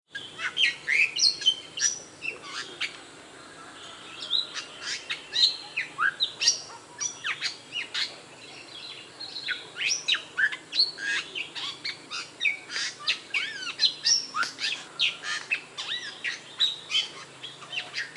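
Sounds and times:
Bali myna giving sharp isolated chirps: 0:00.1 - 0:18.1.

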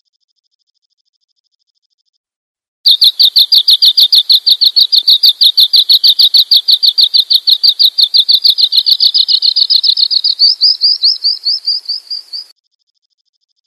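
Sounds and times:
bird chirping: 0:02.9 - 0:12.5.

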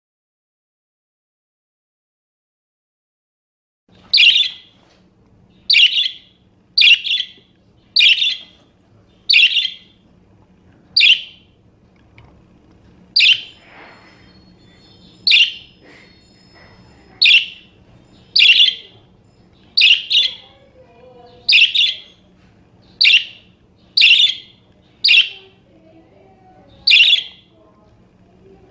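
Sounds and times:
parakeet giving sharp calls: 0:04.0 - 0:04.8, 0:05.5 - 0:10.0, 0:11.0 - 0:11.6, 0:13.1 - 0:25.7, 0:26.7 - 0:27.6.

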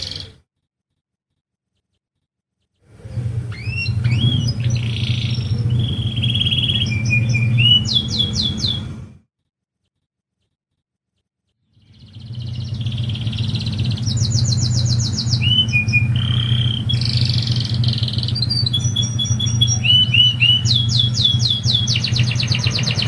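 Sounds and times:
Lancashire canary singing: 0:00.0 - 0:00.4, 0:02.7 - 0:09.2, 0:11.7 - 0:23.0
steady low hum: 0:02.9 - 0:09.2, 0:11.9 - 0:23.0.

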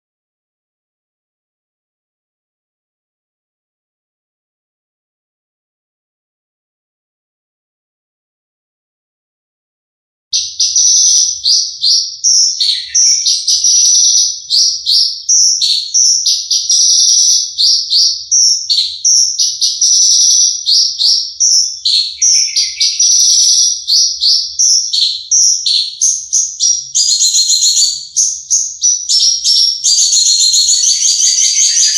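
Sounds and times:
Horsfield's bush lark song: 0:10.4 - 0:31.9.

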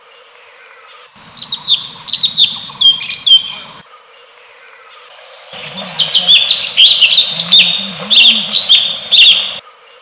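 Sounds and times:
bulbul singing: 0:01.2 - 0:03.8, 0:05.6 - 0:09.6.

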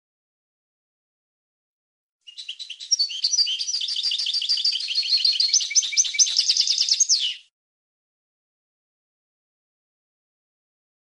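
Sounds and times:
European goldfinch twittering song: 0:02.3 - 0:07.5.

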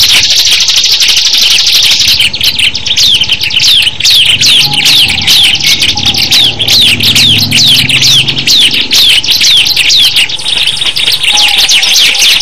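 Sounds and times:
Bar-winged Prinia song: 0:00.0 - 0:12.4
dense overlapping chirps: 0:00.0 - 0:12.4.

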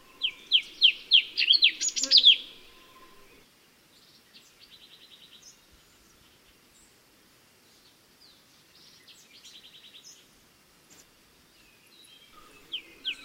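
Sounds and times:
cucak cungko bird calls: 0:00.0 - 0:03.4, 0:12.2 - 0:13.2.

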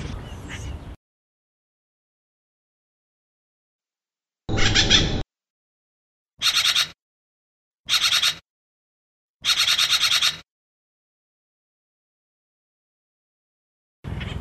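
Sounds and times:
Acorn woodpecker calling in harsh repeated notes: 0:04.5 - 0:05.2, 0:06.4 - 0:07.0, 0:07.9 - 0:08.4, 0:09.4 - 0:10.4.

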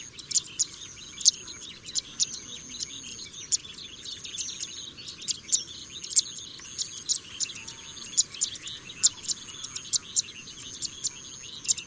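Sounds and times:
pipit uttering quick thin high chirps: 0:00.0 - 0:11.8.

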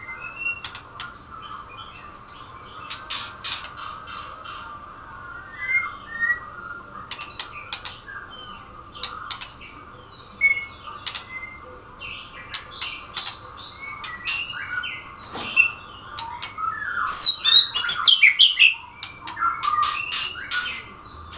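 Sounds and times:
Langkawi murai bird song: 0:00.0 - 0:21.3.

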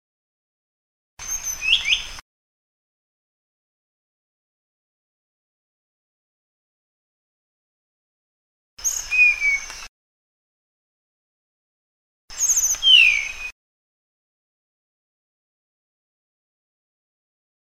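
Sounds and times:
Sunda blue flycatcher song of thin high whistled notes: 0:01.2 - 0:02.2, 0:08.8 - 0:09.9, 0:12.3 - 0:13.6.

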